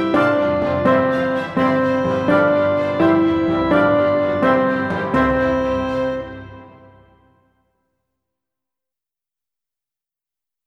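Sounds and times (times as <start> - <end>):
slow classical melody: 0.0 - 7.8.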